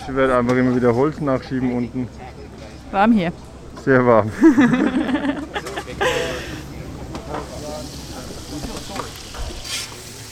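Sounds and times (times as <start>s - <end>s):
speech: 0.0s - 2.2s, 2.9s - 5.2s
laughter: 4.2s - 7.0s
onions frying in a huge pot: 7.4s - 10.3s.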